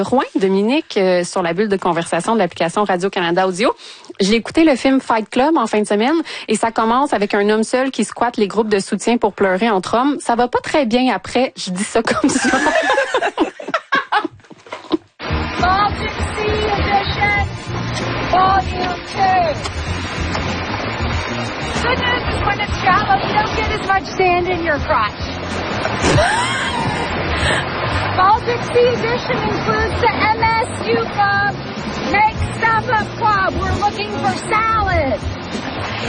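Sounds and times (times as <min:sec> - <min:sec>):
speech: 0:00.0 - 0:13.8, 0:15.6 - 0:20.8, 0:21.4 - 0:36.0
people talking and laughing: 0:11.7 - 0:15.0, 0:21.6 - 0:35.2, 0:35.8 - 0:36.0
ocean waves surging: 0:15.2 - 0:36.0.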